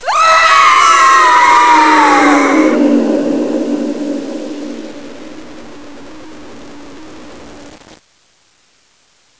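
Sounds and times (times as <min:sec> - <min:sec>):
person screaming: 0:00.0 - 0:04.9.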